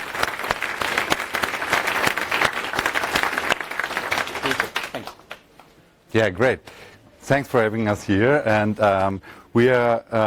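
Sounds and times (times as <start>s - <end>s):
round of applause: 0.0s - 5.5s
speech: 6.2s - 10.2s.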